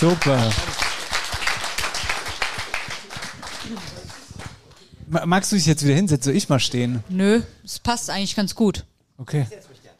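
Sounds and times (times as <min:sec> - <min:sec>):
speech: 0:00.0 - 0:00.7, 0:03.7 - 0:03.9, 0:05.1 - 0:09.7
audience applause: 0:00.0 - 0:04.8.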